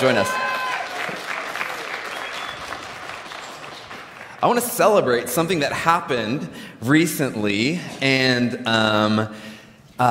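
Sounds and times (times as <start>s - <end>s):
speech: 0.0s - 0.4s, 4.4s - 10.0s
faint whistles and cheers: 0.0s - 3.6s
audience applause: 0.0s - 4.6s.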